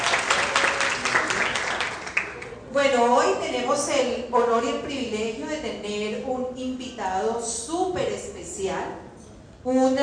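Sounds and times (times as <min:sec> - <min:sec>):
audience applauding the guests: 0:00.0 - 0:02.6
speech: 0:02.8 - 0:10.0.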